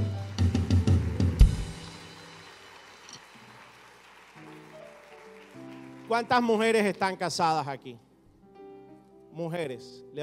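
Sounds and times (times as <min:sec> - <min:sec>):
audience applauding: 0:00.0 - 0:07.0
speech: 0:06.1 - 0:08.1, 0:09.4 - 0:10.2.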